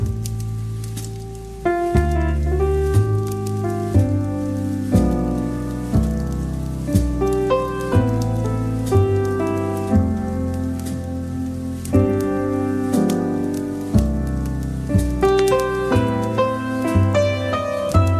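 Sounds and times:
fireplace crackling: 0.0s - 18.1s
soft light jazz with bass line and mellow chords: 0.0s - 18.1s.

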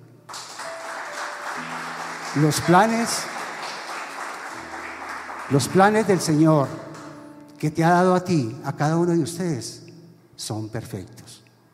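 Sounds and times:
audience applauding: 0.3s - 7.2s
speech: 2.3s - 3.4s, 5.5s - 6.9s, 7.6s - 9.8s, 10.4s - 11.3s.

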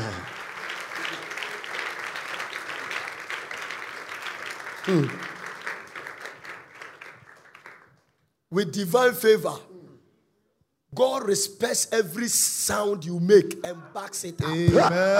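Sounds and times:
crowd clapping: 0.0s - 8.2s
speech: 4.9s - 5.3s, 8.5s - 9.7s, 11.0s - 15.1s.

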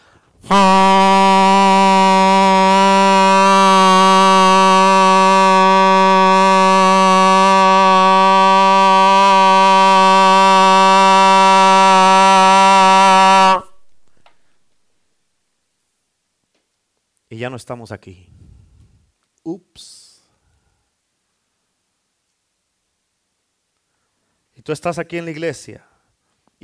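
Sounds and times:
trumpet blast sound effect: 0.4s - 14.6s
speech: 0.5s - 0.7s, 17.3s - 18.4s, 19.4s - 20.0s, 24.6s - 25.9s.

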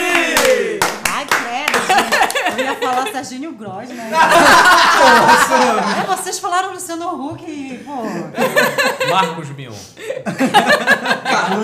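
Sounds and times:
audience clapping: 0.0s - 3.2s, 5.1s - 6.1s
laughter: 1.7s - 3.3s, 3.9s - 6.3s, 8.1s - 11.6s
speech: 2.9s - 11.6s.

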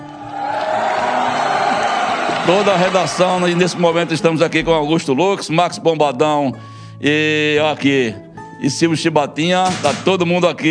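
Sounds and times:
whoops and shouting voices: 0.0s - 4.2s
newsroom staff applauding and cheering: 0.0s - 4.6s
speech: 2.5s - 10.6s.

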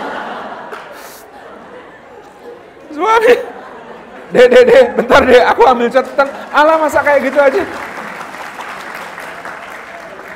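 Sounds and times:
laughter: 0.0s - 6.6s
speech: 3.0s - 3.5s, 4.3s - 7.8s
audience applause: 5.6s - 10.3s.

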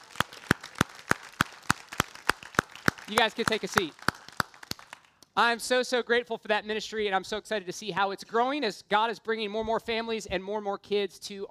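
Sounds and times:
audience applause: 0.0s - 5.1s
speech: 3.1s - 4.0s, 5.4s - 11.5s.

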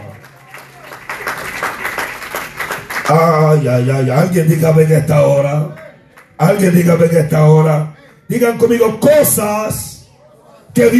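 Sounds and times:
audience applause: 0.0s - 3.2s
speech: 3.1s - 5.8s, 6.4s - 9.9s, 10.8s - 10.9s.

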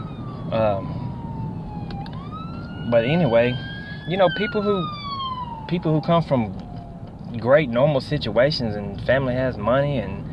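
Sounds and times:
police siren passing by: 0.0s - 7.4s
low traffic rumble: 0.0s - 10.3s
speech: 0.5s - 1.0s, 2.9s - 5.0s, 5.7s - 6.6s, 7.3s - 10.2s.

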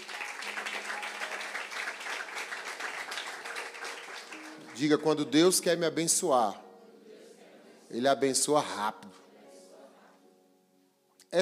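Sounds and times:
audience applauding: 0.0s - 5.6s
speech: 4.8s - 6.7s, 7.9s - 9.2s.

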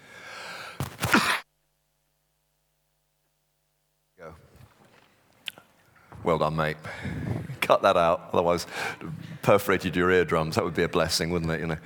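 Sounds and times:
person coughing: 0.9s - 1.5s
speech: 6.2s - 11.8s.

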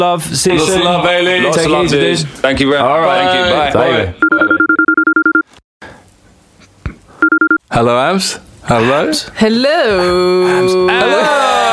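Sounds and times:
speech: 0.0s - 4.5s, 7.8s - 11.7s
outgoing phone call ringing tone: 4.2s - 5.5s, 7.2s - 7.6s.

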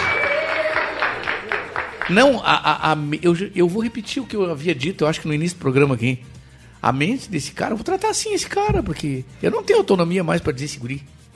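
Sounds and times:
audience applause: 0.0s - 2.4s
speech: 2.1s - 11.3s.

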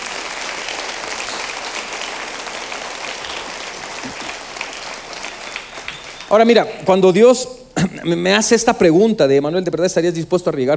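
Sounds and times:
audience applauding: 0.0s - 7.2s
speech: 6.3s - 10.7s.

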